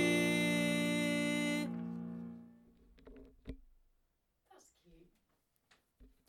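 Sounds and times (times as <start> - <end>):
alto choir singing: 0.0 - 2.5.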